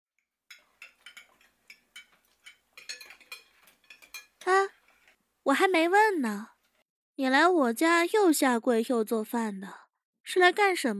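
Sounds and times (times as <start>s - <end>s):
ceramic bowls and metal utensils clinking as they are cleared away: 0.5s - 5.2s
speech: 5.5s - 6.5s, 7.2s - 10.9s.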